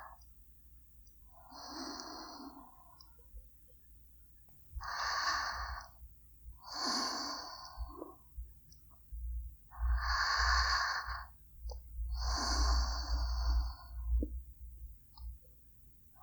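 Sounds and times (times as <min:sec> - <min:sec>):
sleeping breaths: 0:01.4 - 0:03.0, 0:04.8 - 0:06.0, 0:06.6 - 0:08.3, 0:09.7 - 0:11.4, 0:12.1 - 0:14.3.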